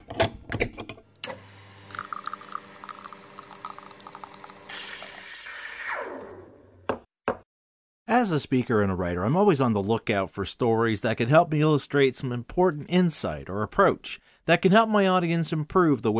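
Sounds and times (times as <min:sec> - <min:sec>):
espresso machine brewing: 0:01.2 - 0:06.2
speech: 0:08.2 - 0:16.1.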